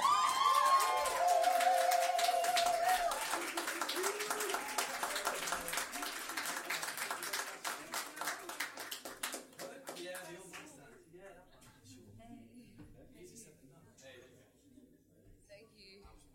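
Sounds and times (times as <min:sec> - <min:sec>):
audience applause: 0:00.0 - 0:10.7.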